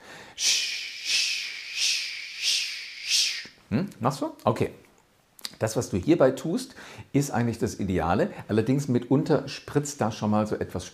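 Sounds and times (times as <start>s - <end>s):
person imitating steam train chugging sch sch: 0.4s - 3.5s
speech: 3.7s - 4.9s, 5.6s - 10.9s.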